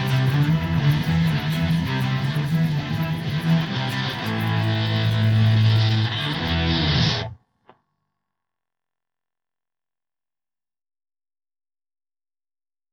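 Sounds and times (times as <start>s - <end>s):
guitar: 0.0s - 7.8s.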